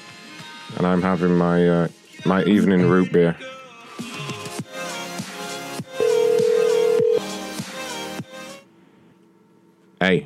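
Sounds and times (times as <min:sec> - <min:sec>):
speech: 0:00.7 - 0:03.6, 0:10.1 - 0:10.2
electronic tones from a phone: 0:06.0 - 0:07.3.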